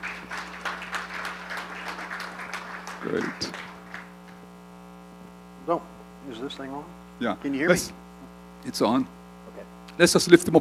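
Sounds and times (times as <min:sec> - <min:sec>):
audience applause: 0:00.0 - 0:04.4
speech: 0:03.0 - 0:03.7, 0:05.7 - 0:08.0, 0:08.6 - 0:09.2, 0:10.0 - 0:10.5.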